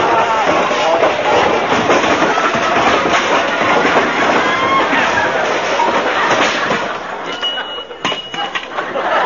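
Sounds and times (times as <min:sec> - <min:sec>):
laughter: 0:00.0 - 0:09.2
objects tumbling and crashing out of an overstuffed closet: 0:00.0 - 0:09.2.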